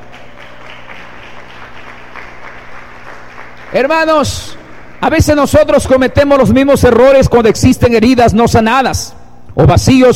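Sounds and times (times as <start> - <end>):
audience applauding: 0.0 - 5.4
speech: 3.7 - 10.1.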